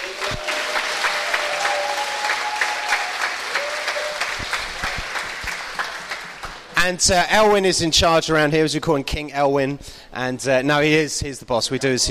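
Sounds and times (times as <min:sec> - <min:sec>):
audience applauding: 0:00.0 - 0:06.8
speech: 0:06.8 - 0:12.0.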